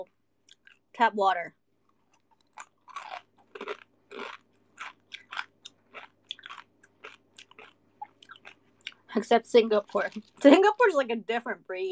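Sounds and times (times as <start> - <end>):
speech: 1.0 - 1.6, 9.2 - 11.9
crunchy dry snack being chewed: 1.8 - 9.1.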